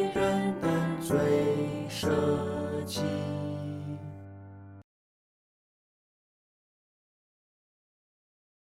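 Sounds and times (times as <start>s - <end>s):
vocals: 0.0s - 4.5s.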